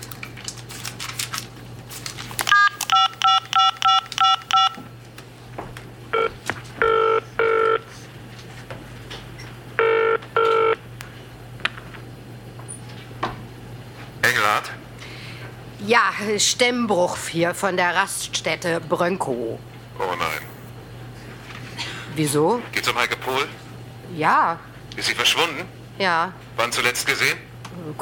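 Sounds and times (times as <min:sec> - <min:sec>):
low electrical hum: 0:00.0 - 0:28.0
phone line ringing: 0:02.5 - 0:04.8, 0:06.1 - 0:07.8, 0:09.8 - 0:10.8
touch-tone dialing beeps: 0:02.5 - 0:04.8
speech: 0:16.2 - 0:19.7, 0:22.2 - 0:28.0.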